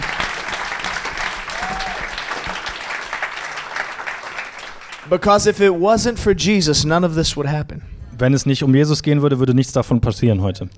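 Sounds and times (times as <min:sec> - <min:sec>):
audience applause: 0:00.0 - 0:05.2
speech: 0:05.1 - 0:10.7.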